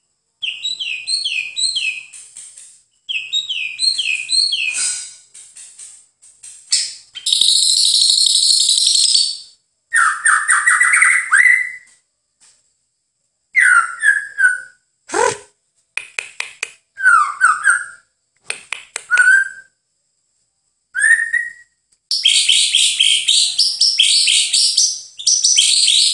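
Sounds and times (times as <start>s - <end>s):
White-rumped shama song with sustained wavering whistle: 0.4s - 2.3s, 2.9s - 5.3s, 6.7s - 12.0s, 13.5s - 15.3s, 16.9s - 19.8s, 20.9s - 26.1s.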